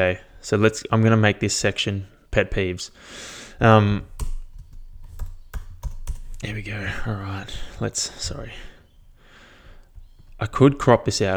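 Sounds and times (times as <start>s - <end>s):
speech: 0.0s - 4.2s, 6.4s - 8.7s, 10.4s - 11.3s
typing on a computer keyboard: 3.9s - 6.6s.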